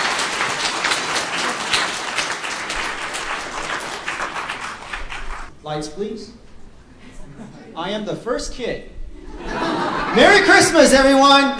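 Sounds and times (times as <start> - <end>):
audience applause welcoming children onto the stage: 0.0 - 5.5
speech: 5.7 - 6.4, 7.8 - 9.0, 10.1 - 11.5
laughter: 7.0 - 7.8, 9.1 - 10.8.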